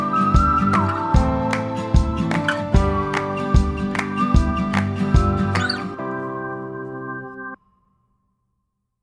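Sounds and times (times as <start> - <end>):
whistling song: 0.0 - 6.0.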